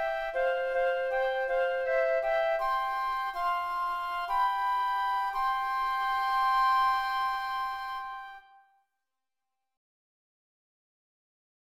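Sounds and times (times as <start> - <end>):
flute: 0.0 - 8.9.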